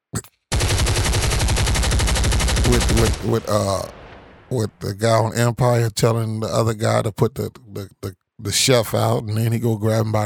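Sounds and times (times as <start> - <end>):
machine gun fire: 0.5 - 4.5
speech: 2.7 - 10.2.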